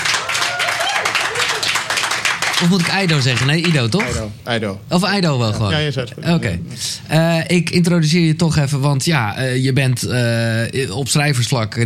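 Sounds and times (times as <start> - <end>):
audience applause for a guest author at a book presentation: 0.0 - 4.2
speech: 2.6 - 11.8.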